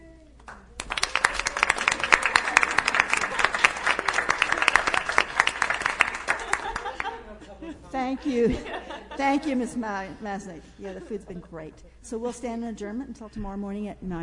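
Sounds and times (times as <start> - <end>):
room applauding the caterer: 0.4 - 7.2
laughter: 2.0 - 11.6
speech: 8.1 - 14.2.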